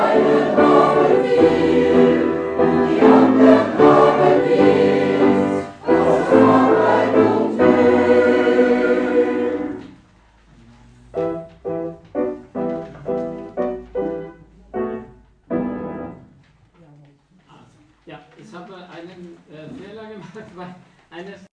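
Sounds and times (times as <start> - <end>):
SATB four-part choir singing: 0.0 - 10.1.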